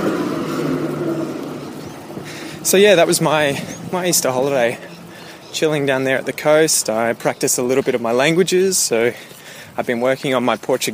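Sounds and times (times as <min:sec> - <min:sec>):
tram passing in a park: 0:00.0 - 0:05.5
speech: 0:02.7 - 0:04.9, 0:05.5 - 0:10.9.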